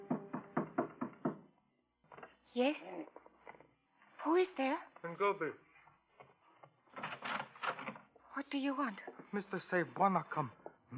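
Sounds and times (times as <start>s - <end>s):
knocking on a door: 0.0s - 1.5s
speech: 2.6s - 3.2s, 4.2s - 5.6s, 8.4s - 10.9s.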